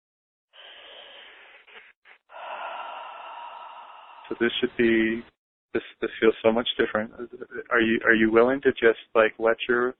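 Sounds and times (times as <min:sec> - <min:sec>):
group taking a deep breath in together: 0:00.5 - 0:04.4
speech: 0:04.3 - 0:09.9.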